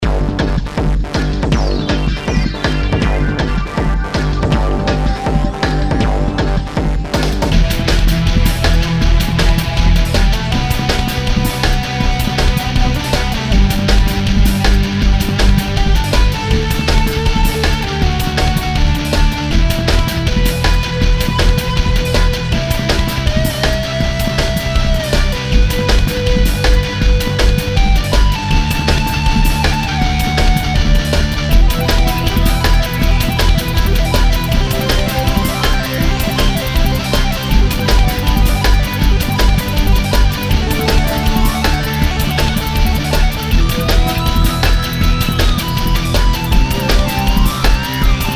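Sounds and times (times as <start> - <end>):
background music pads: 0.0 - 48.3.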